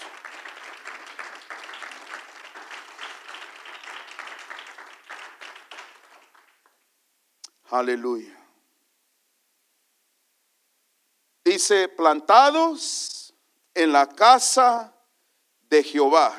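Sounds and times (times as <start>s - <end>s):
audience applause: 0.0s - 6.8s
speech: 7.7s - 8.4s, 11.6s - 13.2s, 13.8s - 15.0s, 15.7s - 16.3s.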